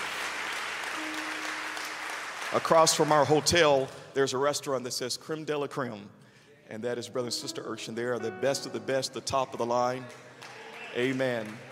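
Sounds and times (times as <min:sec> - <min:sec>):
church congregation clapping in thanks to a pastor couple: 0:00.0 - 0:04.8, 0:09.4 - 0:11.6
speech: 0:02.5 - 0:11.6.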